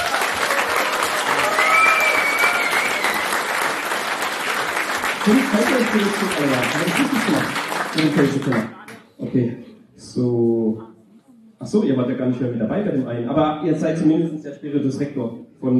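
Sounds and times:
audience applause: 0.0s - 8.9s
speech: 5.3s - 10.9s, 11.6s - 15.7s.

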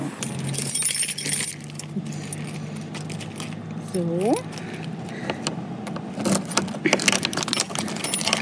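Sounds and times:
low steady hum: 0.0s - 8.4s
heavy lock being removed from door: 0.2s - 8.4s
speech: 3.9s - 4.6s.

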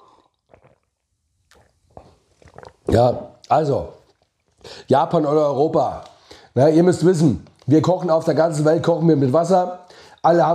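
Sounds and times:
person sipping a drink: 0.0s - 4.9s
speech: 2.9s - 4.0s, 4.8s - 10.5s.

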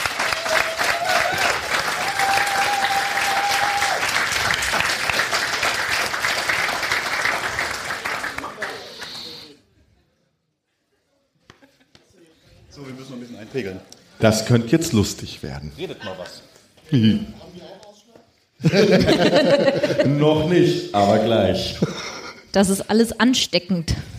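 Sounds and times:
audience applause: 0.0s - 9.5s
laughter: 10.9s - 12.4s, 18.6s - 20.6s, 21.6s - 22.5s
speech: 13.6s - 17.4s, 18.6s - 21.9s, 22.5s - 24.1s.

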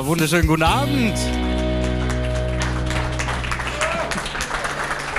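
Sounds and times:
speech: 0.1s - 1.5s
audience applause: 1.2s - 5.1s.

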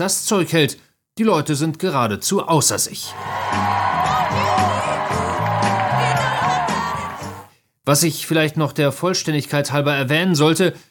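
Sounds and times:
speech: 0.0s - 5.3s, 7.9s - 10.8s
people squealing: 3.1s - 7.4s
office crowd cheering: 3.1s - 7.5s
people clapping: 3.1s - 7.5s.

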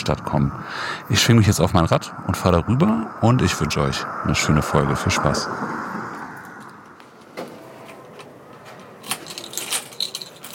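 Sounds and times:
speech: 0.1s - 5.9s
keys jingling: 7.8s - 10.5s.

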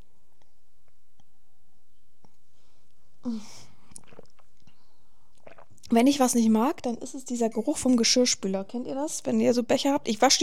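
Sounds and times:
speech: 3.2s - 3.6s, 5.9s - 10.4s
person sipping a drink: 3.2s - 6.0s.

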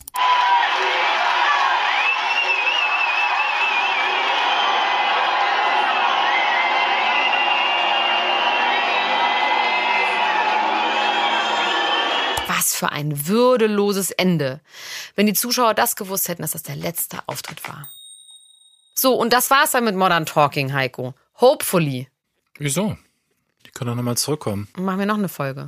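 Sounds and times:
large concert crowd booing: 0.0s - 12.6s
speech: 12.8s - 18.0s, 19.0s - 23.0s, 23.6s - 25.6s.

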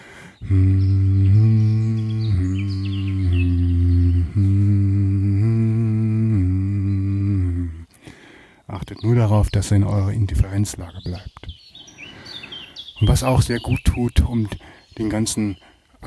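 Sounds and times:
person humming in tones: 0.0s - 8.2s
speech: 0.5s - 0.8s, 9.1s - 11.5s, 13.0s - 15.7s.

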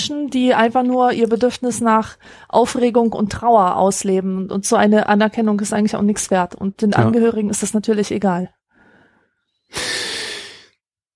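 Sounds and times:
speech: 0.0s - 8.6s, 9.7s - 10.0s
wheezing asthmatic breathing: 8.7s - 10.8s.

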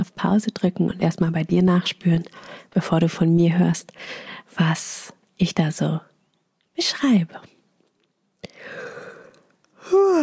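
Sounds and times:
speech: 0.2s - 6.1s, 6.8s - 7.5s, 9.9s - 10.2s
yawn: 8.4s - 10.2s.

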